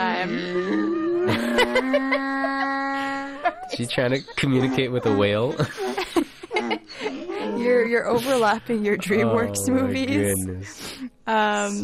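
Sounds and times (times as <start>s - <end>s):
person imitating donkey bray: 0.0s - 3.3s, 4.0s - 5.5s, 9.2s - 10.7s
laughter: 0.7s - 10.9s
speech: 1.6s - 2.4s, 3.7s - 5.8s, 7.9s - 11.8s.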